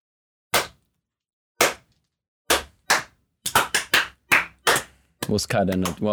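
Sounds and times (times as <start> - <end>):
lone person clapping: 1.6 - 1.8, 2.5 - 6.1
speech: 5.3 - 6.1.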